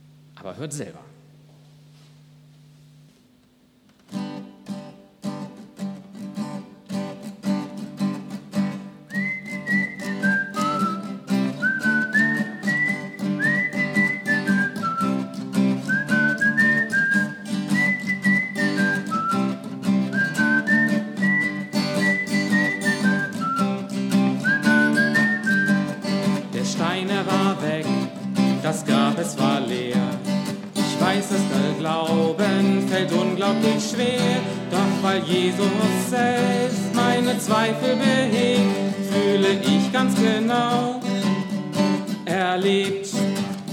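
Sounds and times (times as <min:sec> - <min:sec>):
speech: 0:00.4 - 0:01.2
instrumental accompaniment with rhythmic strumming: 0:03.9 - 0:43.7
person whistling the refrain of a song: 0:09.1 - 0:26.4.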